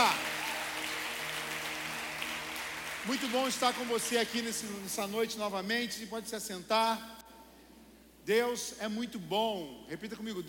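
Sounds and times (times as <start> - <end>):
audience applause: 0.0 - 4.8
speech: 3.0 - 7.2, 8.2 - 10.4.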